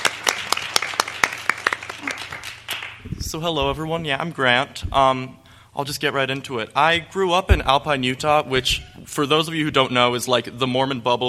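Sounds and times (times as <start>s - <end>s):
audience applause: 0.0s - 3.0s
speech: 3.3s - 11.2s.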